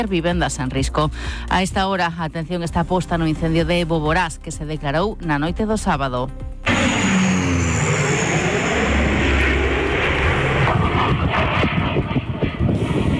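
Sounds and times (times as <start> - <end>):
speech: 0.0 - 6.5
Ejército del Aire firefighting airplanes flying overhead: 6.6 - 13.1.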